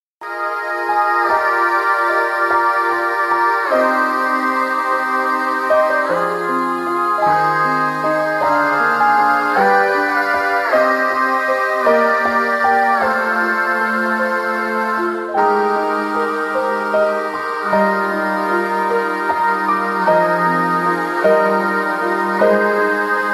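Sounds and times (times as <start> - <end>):
piano: 0.2 - 23.3.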